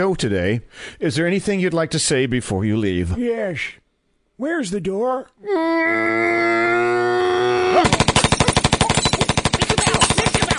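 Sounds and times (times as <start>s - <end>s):
speech: 0.0s - 3.8s, 4.4s - 7.9s
machine gun fire: 7.8s - 10.5s.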